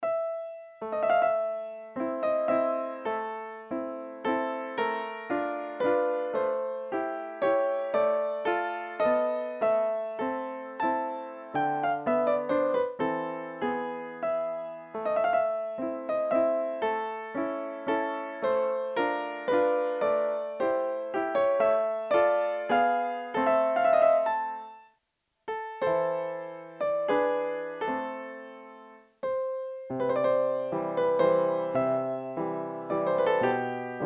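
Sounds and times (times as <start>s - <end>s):
V-Piano digital piano: 0.0s - 34.0s.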